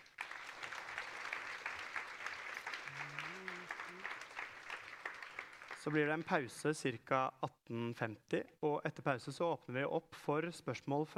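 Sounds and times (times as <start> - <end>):
audience applause: 0.0 - 6.0
speech: 5.8 - 11.1.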